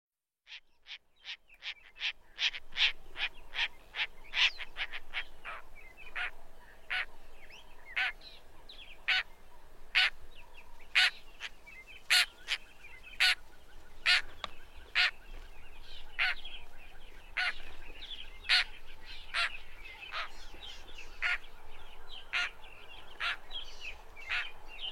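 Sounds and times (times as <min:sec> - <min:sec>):
lilac-breasted roller grating calls: 0:00.5 - 0:06.3, 0:06.9 - 0:07.1, 0:07.9 - 0:08.2, 0:09.9 - 0:10.2, 0:10.9 - 0:15.2, 0:16.2 - 0:16.5, 0:17.4 - 0:17.7, 0:18.4 - 0:20.4, 0:22.3 - 0:22.6, 0:23.2 - 0:23.4, 0:24.2 - 0:24.9.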